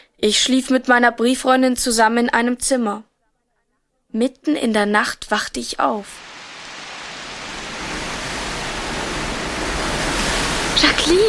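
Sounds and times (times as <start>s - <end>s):
speech: 0.2s - 3.1s, 4.1s - 6.3s, 11.1s - 11.2s
storm wind howling around a house: 6.0s - 11.2s.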